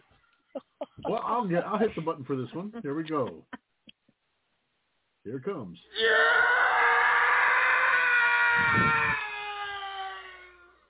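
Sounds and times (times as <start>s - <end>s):
speech: 1.2s - 3.6s, 5.2s - 6.5s, 8.6s - 9.0s
stock movie scream: 5.9s - 10.8s.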